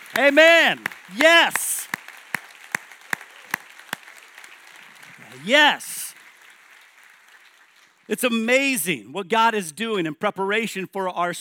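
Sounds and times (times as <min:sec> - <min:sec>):
audience applause: 0:00.0 - 0:08.1
speech: 0:00.2 - 0:01.6, 0:05.4 - 0:05.9, 0:08.1 - 0:11.3.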